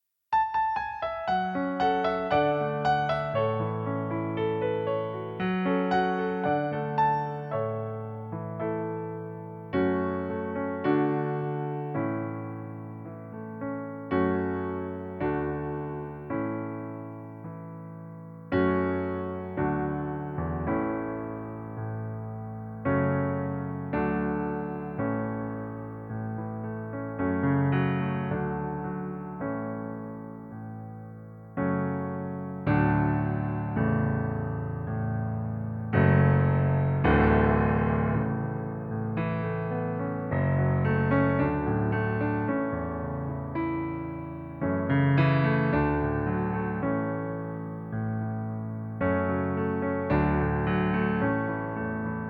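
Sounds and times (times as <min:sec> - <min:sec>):
piano backing track in A major: 0:00.3 - 0:52.2.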